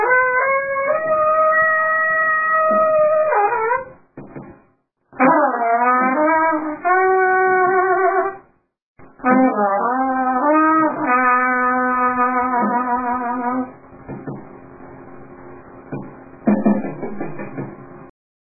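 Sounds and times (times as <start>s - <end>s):
clarinet accompaniment: 0.0s - 4.0s, 5.2s - 8.4s, 9.2s - 13.7s.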